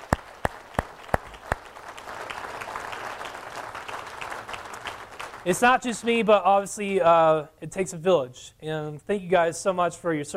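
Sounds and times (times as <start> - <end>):
crowd applause: 0.0 - 6.1
loud claps: 0.0 - 6.2
speech: 5.4 - 10.3.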